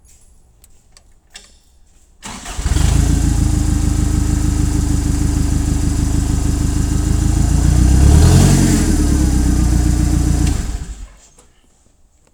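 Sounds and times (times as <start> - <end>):
forklift starting: 2.2 - 11.3.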